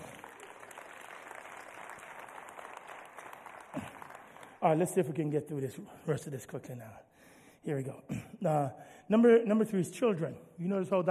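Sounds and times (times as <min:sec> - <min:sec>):
audience applause: 0:00.0 - 0:05.0
speech: 0:04.6 - 0:11.1.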